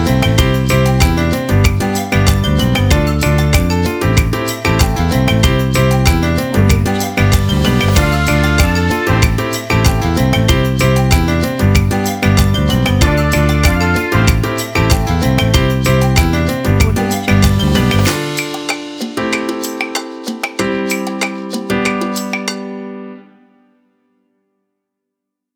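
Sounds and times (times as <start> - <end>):
upbeat piano music: 0.0 - 23.9.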